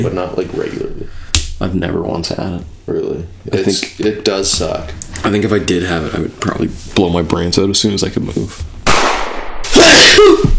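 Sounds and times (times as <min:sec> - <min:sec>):
speech: 0:00.0 - 0:01.0, 0:01.6 - 0:08.6, 0:09.8 - 0:10.5
person sneezing: 0:09.7 - 0:10.5.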